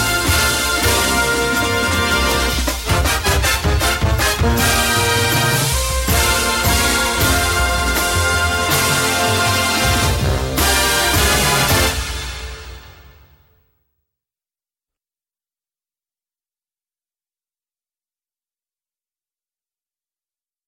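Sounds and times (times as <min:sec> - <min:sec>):
drum: 0:00.0 - 0:12.8.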